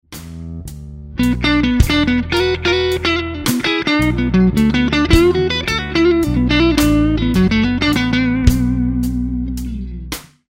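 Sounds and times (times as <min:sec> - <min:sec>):
guitar lick: 0:01.2 - 0:10.3.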